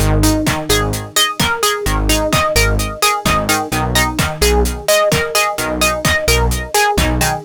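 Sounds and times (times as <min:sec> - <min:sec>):
music loop without bass drum: 0:00.0 - 0:07.4.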